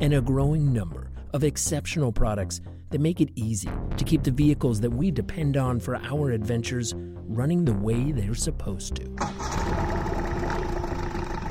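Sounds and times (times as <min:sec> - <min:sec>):
speech: 0:00.0 - 0:10.2
boat motor idling: 0:09.2 - 0:11.5.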